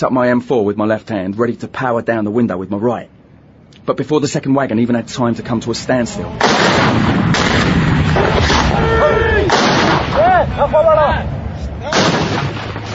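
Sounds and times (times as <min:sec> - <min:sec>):
speech: 0:00.0 - 0:03.2, 0:03.9 - 0:12.5
constant rumble: 0:00.0 - 0:12.9
RPG launchers firing in an ambush: 0:06.2 - 0:12.9.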